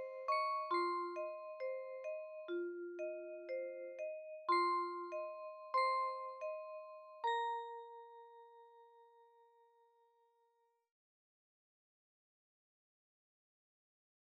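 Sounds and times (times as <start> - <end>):
music box melody: 0.0 - 9.8.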